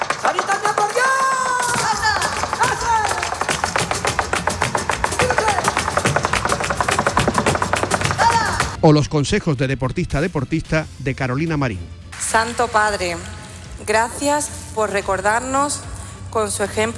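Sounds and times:
flamenco heel tapping: 0.0 - 8.8
speech: 8.8 - 16.9.

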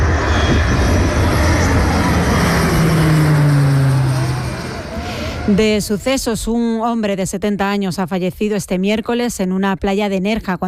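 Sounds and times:
cargo plane on the ground engine roar: 0.0 - 6.4
speech: 5.5 - 10.6.

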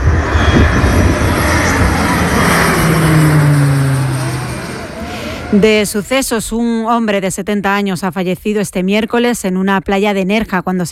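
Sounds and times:
cargo aircraft heard from the ground: 0.0 - 6.4
speech: 5.5 - 10.8.

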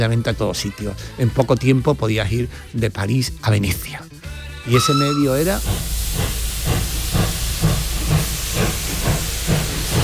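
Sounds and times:
speech: 0.0 - 5.9
steam train at a station giving off steam hiss: 4.8 - 10.0.

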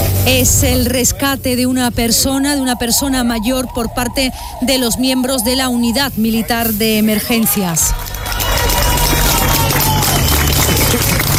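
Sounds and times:
speech: 0.2 - 8.4
applause celebrating a rescue after 72 hours trapped: 7.3 - 11.3.

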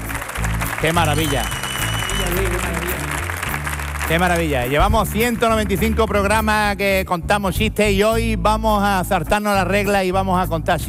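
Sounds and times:
studio audience applause: 0.0 - 6.6
speech: 0.8 - 1.6, 2.2 - 2.9, 4.1 - 10.8.

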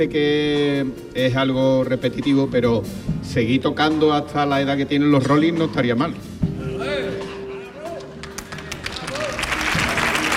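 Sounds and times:
speech: 0.0 - 6.4
audience ovation applause: 8.2 - 10.3.

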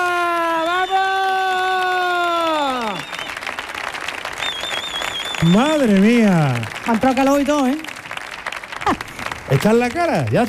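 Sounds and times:
studio audience whooping cry: 0.0 - 3.0
studio audience applause: 0.0 - 10.4
studio crowd noise: 0.0 - 10.4
speech: 5.4 - 7.9, 8.9 - 10.4.

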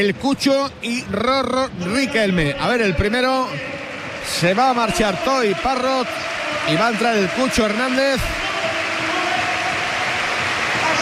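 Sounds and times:
speech: 0.0 - 8.4
stadium crowd applause: 2.6 - 11.0.

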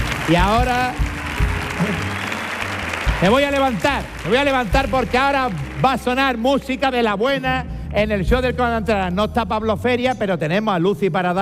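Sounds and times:
audience ovation for two comedy performers at a live show: 0.0 - 7.1
speech: 0.3 - 1.1, 1.8 - 2.3, 3.2 - 11.3.

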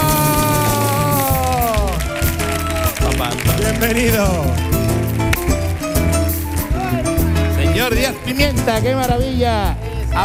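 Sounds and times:
audience clapping: 0.0 - 7.3
speech: 3.8 - 4.7, 7.8 - 10.2.

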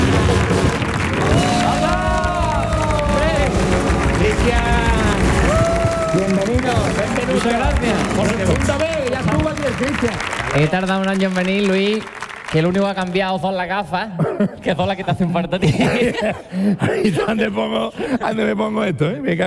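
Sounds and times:
crowd cheering and whooping: 0.0 - 10.8
crowd applause: 0.0 - 13.7
speech: 10.0 - 19.4
laughter: 14.1 - 18.7.

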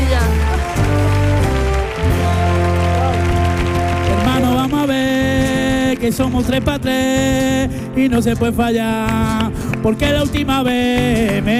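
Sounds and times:
audience applause: 0.0 - 6.6
speech: 6.1 - 11.5.

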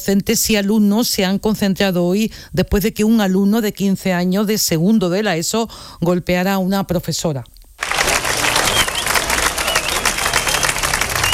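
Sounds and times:
speech: 0.0 - 7.6
ovation applause at a school protest: 7.8 - 11.3.

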